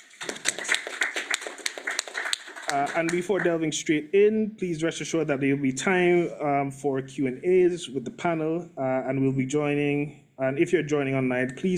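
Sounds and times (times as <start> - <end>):
audience applause: 0.0 - 3.6
speech: 2.7 - 11.7.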